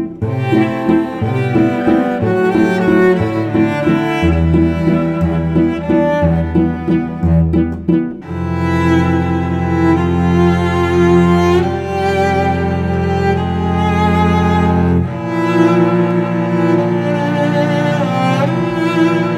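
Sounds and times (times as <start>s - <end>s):
cello: 0.0s - 19.3s.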